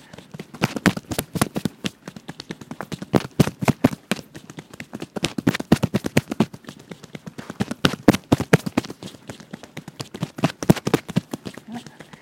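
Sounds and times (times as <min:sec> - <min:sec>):
hands tapping on the upper chest: 0:00.0 - 0:12.2.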